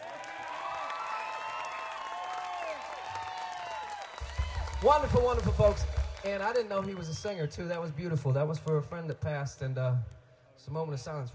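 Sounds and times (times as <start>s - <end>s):
crowd cheering: 0.0s - 9.0s
speech: 4.8s - 11.3s.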